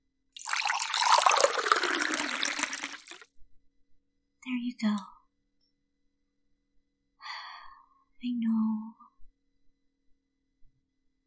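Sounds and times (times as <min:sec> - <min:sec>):
faint water drips: 0:00.4 - 0:03.2
water pouring into a water bottle: 0:00.4 - 0:03.2
speech: 0:04.7 - 0:05.2.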